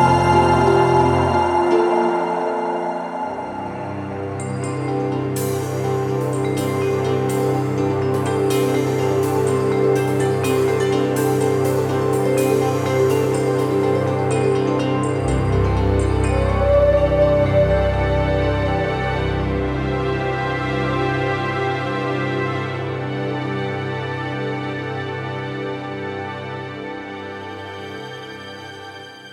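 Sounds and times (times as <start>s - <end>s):
music: 0.0s - 29.3s.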